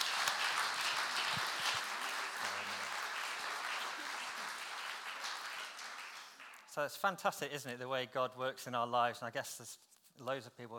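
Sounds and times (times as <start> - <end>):
audience clapping: 0.0 - 6.8
speech: 6.8 - 10.7.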